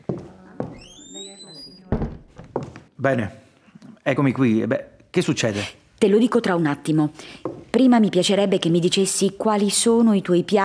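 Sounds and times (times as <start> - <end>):
door closing thuds: 0.7 - 2.8
speech: 3.0 - 3.4, 4.0 - 10.6.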